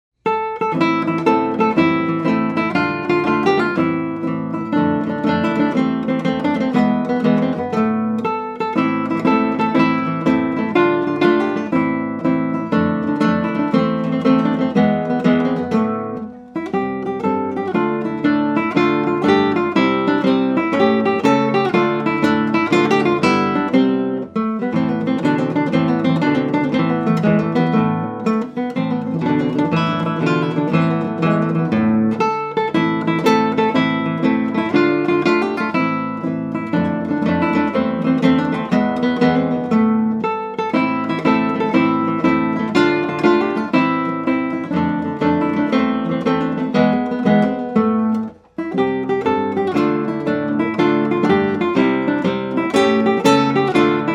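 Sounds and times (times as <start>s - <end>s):
tarantella on guitar: 0.2s - 54.1s.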